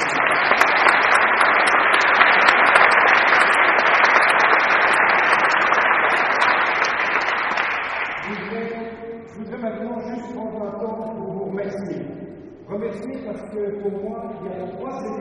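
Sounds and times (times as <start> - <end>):
audience applause: 0.0 - 8.5.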